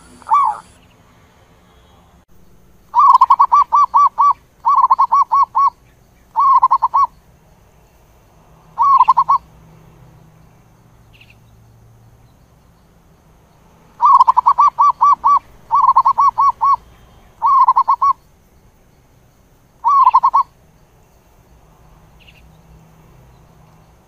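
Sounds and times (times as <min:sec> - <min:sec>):
zebra dove cooing: 0:00.0 - 0:00.8, 0:02.9 - 0:05.8, 0:06.4 - 0:07.1, 0:08.8 - 0:09.5, 0:14.0 - 0:16.8, 0:17.4 - 0:18.2, 0:19.8 - 0:20.5.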